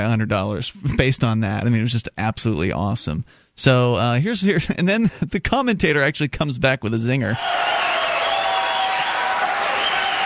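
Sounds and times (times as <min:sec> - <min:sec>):
speech: 0:00.0 - 0:07.8
crowd applause: 0:07.4 - 0:10.2.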